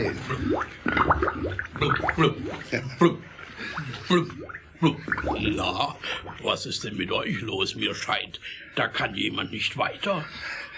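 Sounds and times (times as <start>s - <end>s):
speech: 0.0s - 1.1s, 1.8s - 10.7s
person imitating carp blubbering: 0.0s - 6.4s.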